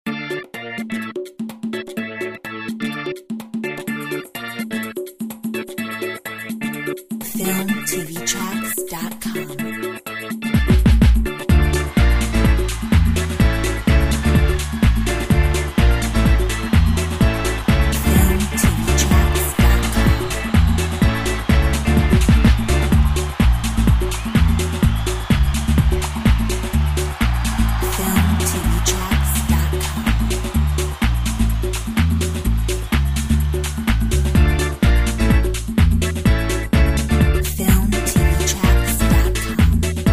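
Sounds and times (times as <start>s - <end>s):
salsa music: 0.1s - 40.1s.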